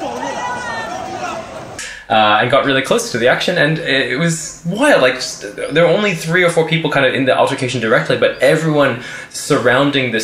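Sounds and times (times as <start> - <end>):
big crowd yelling: 0.0 - 2.7
speech: 2.1 - 10.2.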